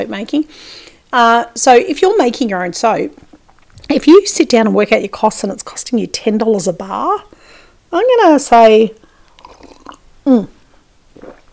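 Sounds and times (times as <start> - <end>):
speech: 0.0 - 3.3, 3.9 - 9.0, 10.3 - 10.6
slurp of tea: 9.3 - 10.0, 11.2 - 11.5.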